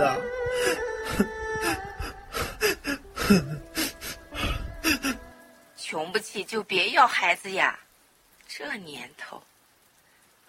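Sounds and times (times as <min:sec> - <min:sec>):
speech: 0:00.0 - 0:01.8, 0:03.3 - 0:03.6, 0:06.3 - 0:07.9, 0:08.5 - 0:09.5
person sobbing loudly kneeling at a doctor's feet: 0:00.5 - 0:05.3.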